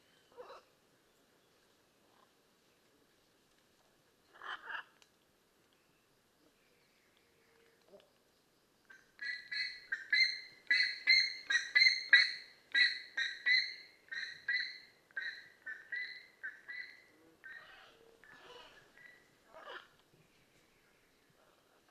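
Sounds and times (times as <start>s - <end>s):
blue-and-yellow macaw squawking: 9.2s - 19.9s.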